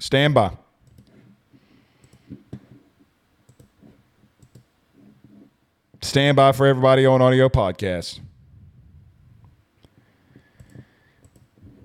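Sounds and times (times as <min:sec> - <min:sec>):
speech: 0:00.0 - 0:00.6, 0:06.0 - 0:08.3
computer mouse clicking on links: 0:00.8 - 0:01.2, 0:02.0 - 0:02.5, 0:03.5 - 0:03.8, 0:04.4 - 0:04.7, 0:10.5 - 0:11.8.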